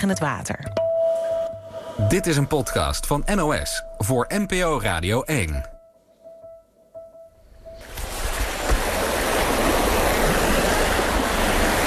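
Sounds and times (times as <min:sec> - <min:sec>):
speech: 0:00.0 - 0:00.8, 0:02.0 - 0:05.7
floodwater swirling through village streets: 0:07.8 - 0:11.8.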